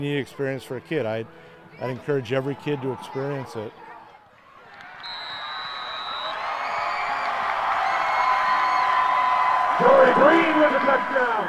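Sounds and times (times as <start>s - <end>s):
speech: 0.0s - 3.8s
football crowd yelling: 2.4s - 11.4s
cheerleaders cheering at a football game: 2.8s - 11.4s.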